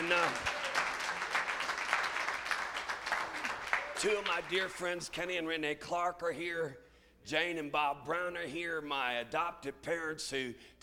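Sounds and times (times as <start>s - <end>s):
church congregation clapping hands in praise: 0.0s - 5.1s
speech: 4.0s - 10.8s.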